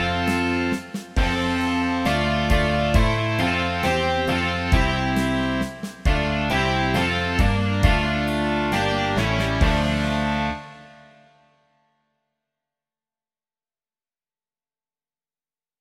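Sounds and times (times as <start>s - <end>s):
rock music: 0.0s - 11.2s.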